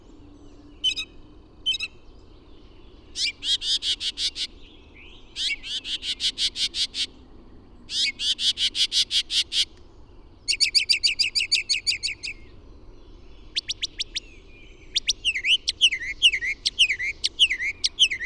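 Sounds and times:
bird song of loud high ringing notes: 0.0s - 7.1s, 7.8s - 18.2s.

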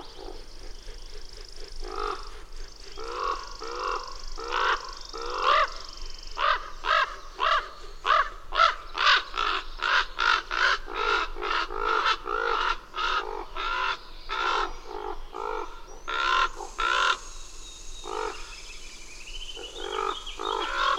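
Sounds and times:
bird cawing hoarsely: 1.9s - 14.7s, 16.1s - 20.9s.

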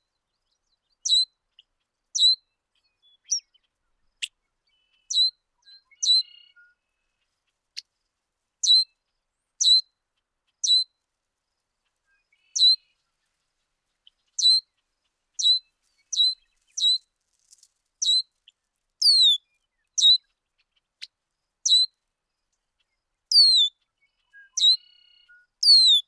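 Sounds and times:
bird song of high descending whistled phrases: 1.0s - 1.3s, 2.2s - 3.6s, 4.2s - 6.8s, 8.6s - 9.0s, 9.6s - 9.9s, 10.6s - 10.9s, 12.1s - 13.0s, 14.4s - 14.7s, 15.4s - 17.0s, 18.0s - 18.3s, 19.0s - 20.2s, 21.0s - 21.9s, 23.3s - 26.0s.

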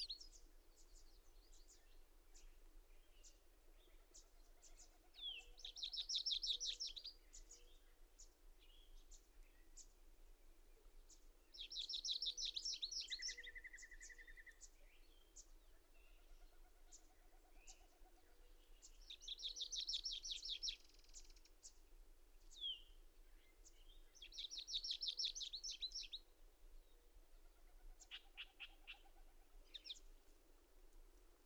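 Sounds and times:
bird trilling song: 4.6s - 7.8s, 11.6s - 16.3s, 18.7s - 21.5s, 22.5s - 26.2s, 28.0s - 30.1s.

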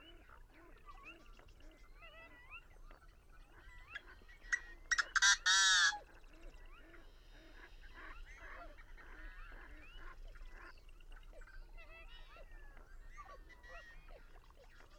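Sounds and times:
busy chorus of nasal honking bird calls: 4.5s - 6.0s.

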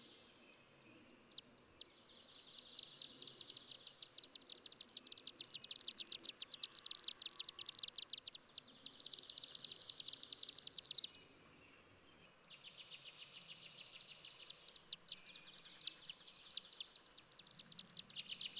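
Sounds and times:
bird singing a fast high sizzling twitter: 1.3s - 11.9s, 12.5s - 18.5s.

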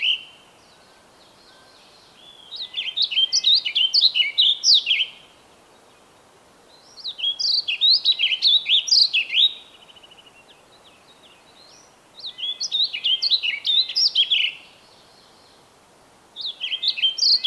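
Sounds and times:
bird song of quick high chirping phrases with warbled notes: 0.0s - 15.7s, 16.4s - 17.4s.

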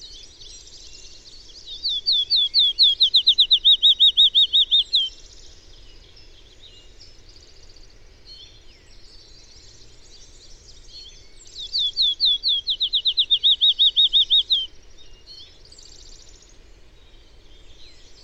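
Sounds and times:
bird singing fast slurred whistles: 1.8s - 5.1s, 11.6s - 14.7s.

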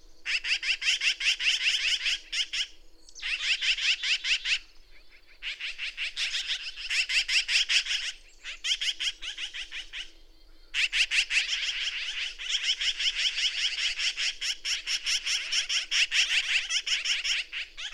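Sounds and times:
bird song: 0.0s - 17.9s.

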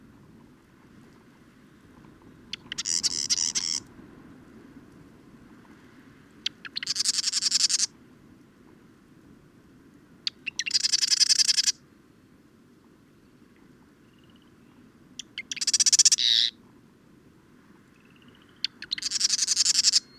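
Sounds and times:
bird song with high sharp chirped notes and dense rapid trill: 2.5s - 3.8s, 6.6s - 7.9s, 10.3s - 11.8s, 15.2s - 16.6s, 18.0s - 20.1s.

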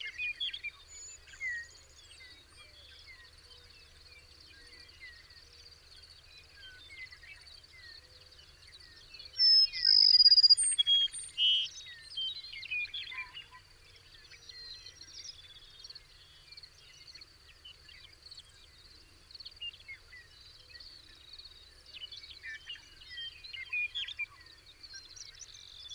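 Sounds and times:
bird singing a brief bright phrase: 0.0s - 25.9s.

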